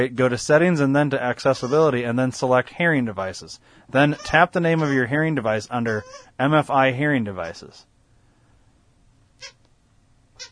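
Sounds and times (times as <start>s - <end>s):
speech: 0.0s - 7.9s
dog squeaking: 1.6s - 1.9s, 4.0s - 5.0s, 5.8s - 6.3s, 9.4s - 9.6s.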